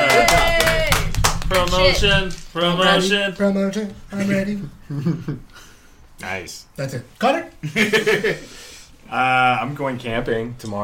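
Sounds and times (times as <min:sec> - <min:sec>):
round of applause, clapping: 0:00.0 - 0:03.1
speech: 0:01.5 - 0:05.6, 0:06.2 - 0:10.8
laughter: 0:04.1 - 0:05.7, 0:07.6 - 0:08.5.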